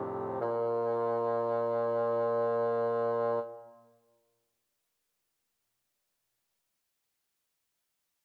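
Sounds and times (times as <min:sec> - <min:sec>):
bassoon trio playing a carol: 0:00.0 - 0:03.6.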